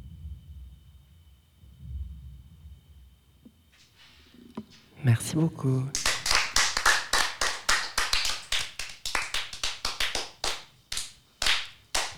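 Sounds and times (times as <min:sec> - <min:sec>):
speech: 0:05.0 - 0:06.0
audience applause: 0:05.9 - 0:12.1.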